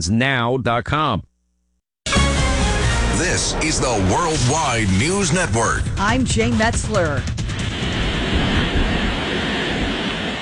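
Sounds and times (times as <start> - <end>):
speech: 0.0 - 1.3, 3.2 - 8.5
roaring wind from the eye wall of Category 1 Hurricane Lala at Hawaii's Big Island: 6.0 - 10.4.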